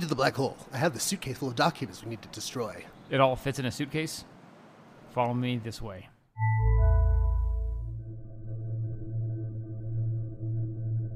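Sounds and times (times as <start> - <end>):
speech: 0.1 - 4.3, 5.2 - 6.6
ominous humming of a black hole's containment field: 6.4 - 11.1.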